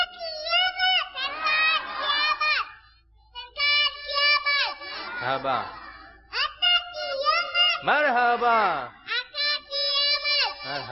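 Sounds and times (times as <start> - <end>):
crowd of children shouting a slogan in unison: 0.0 - 2.8, 3.4 - 10.9
speech: 5.2 - 5.8, 7.8 - 9.0, 10.6 - 10.9.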